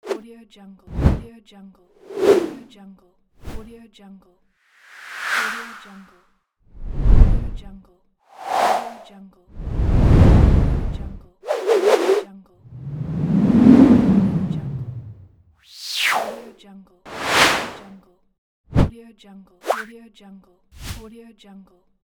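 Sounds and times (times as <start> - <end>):
whooshes: 0.9 - 1.2, 2.0 - 2.7, 4.8 - 6.0, 6.8 - 7.8, 8.4 - 16.5, 17.1 - 17.9.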